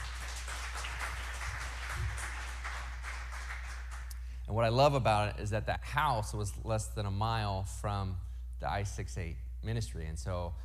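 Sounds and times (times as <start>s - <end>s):
audience clapping: 0.0s - 4.3s
constant low hum: 0.0s - 10.6s
speech: 4.5s - 10.6s.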